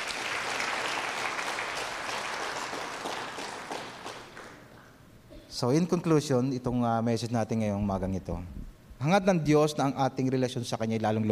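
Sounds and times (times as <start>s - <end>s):
congregation applauding the Lord during a church service: 0.0s - 5.0s
speech: 5.6s - 11.2s.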